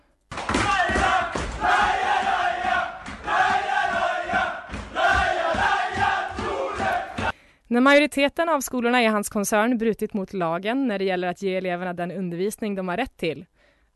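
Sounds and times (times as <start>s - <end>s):
large crowd cheering and roaring: 0.3s - 7.3s
speech: 7.8s - 13.5s.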